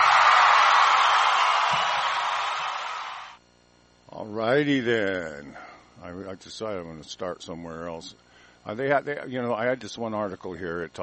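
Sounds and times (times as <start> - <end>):
audience applause: 0.0 - 3.4
speech: 4.6 - 11.0.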